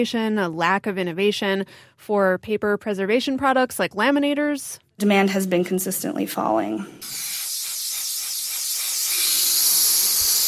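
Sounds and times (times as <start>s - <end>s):
speech: 0.0s - 7.3s
helium machine inflating balloons in office supply store in Brooklyn: 7.0s - 10.4s.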